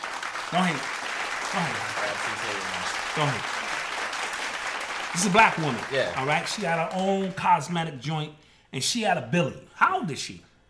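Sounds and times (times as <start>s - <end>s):
hand clapping: 0.0s - 7.8s
speech: 0.5s - 3.6s, 5.1s - 10.5s.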